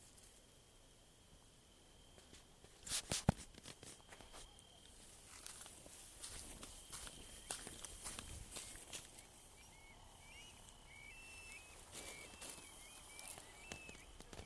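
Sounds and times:
crickets chirping: 0.0s - 14.4s.

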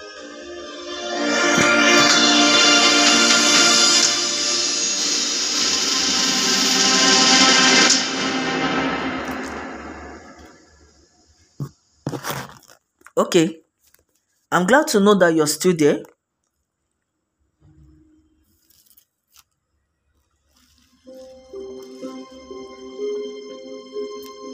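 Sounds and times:
music playing: 0.0s - 10.9s, 21.0s - 24.5s
speech: 13.3s - 13.6s, 14.5s - 16.1s.

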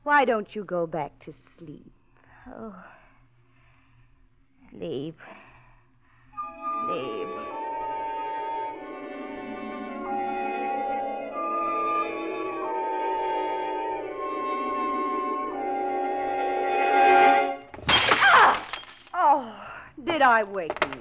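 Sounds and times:
speech: 0.0s - 3.0s, 4.7s - 5.4s, 6.9s - 7.5s, 20.1s - 21.0s
sustained tonal music: 6.4s - 17.7s
vase knocked off mantel and shattering: 17.7s - 19.2s.

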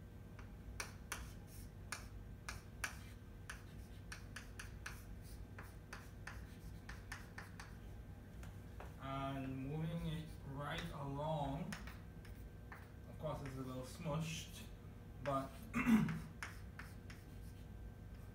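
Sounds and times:
low steady hum: 0.0s - 18.3s
chalk or marker strokes on a board drawing a guanosine structure: 0.8s - 7.8s, 9.8s - 11.0s, 11.7s - 13.9s, 15.2s - 18.3s.

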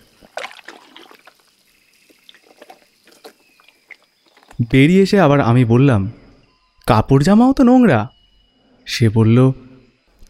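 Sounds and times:
water trickling and splashing as feet are washed in a washroom: 0.0s - 4.6s
speech: 4.6s - 6.2s, 6.9s - 8.2s, 8.9s - 9.6s.

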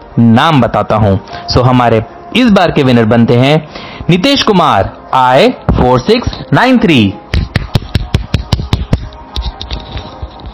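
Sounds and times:
speech: 0.2s - 7.2s
one person clapping hands: 7.3s - 10.5s.

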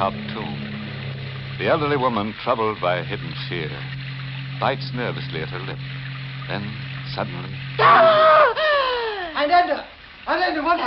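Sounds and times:
speech: 0.0s - 0.6s, 1.6s - 4.0s, 4.6s - 8.2s, 9.4s - 10.8s
woman screaming: 7.8s - 9.4s.

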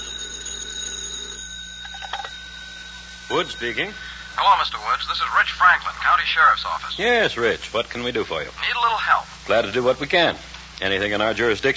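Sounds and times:
telephone ringing: 0.0s - 7.0s
speech: 3.3s - 11.7s.

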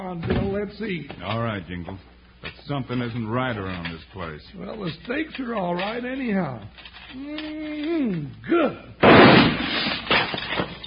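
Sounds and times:
speech: 0.1s - 10.7s
gunshot: 9.0s - 10.0s.

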